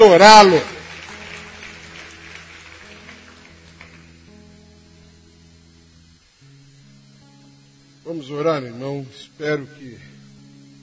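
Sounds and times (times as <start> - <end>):
audience applauding: 0.0 - 4.4
speech: 0.2 - 0.7, 8.1 - 10.1.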